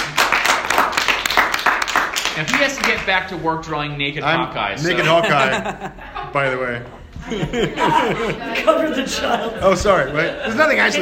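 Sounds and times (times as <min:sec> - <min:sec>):
audience applause: 0:00.0 - 0:03.1
speech: 0:02.4 - 0:10.9
laughter: 0:04.8 - 0:10.9.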